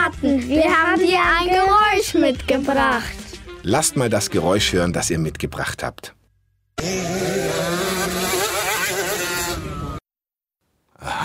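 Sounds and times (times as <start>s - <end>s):
speech: 0.2s - 6.2s, 6.8s - 7.6s
motocross motorcycle engines revving: 6.8s - 10.0s.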